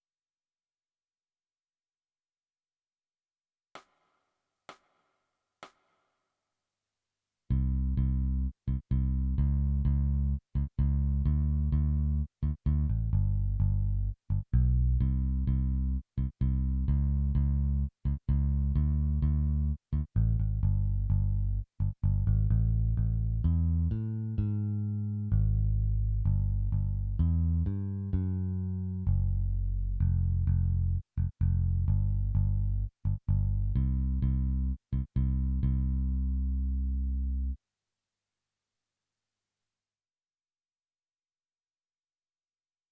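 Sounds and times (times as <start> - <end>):
bass: 7.5 - 37.6.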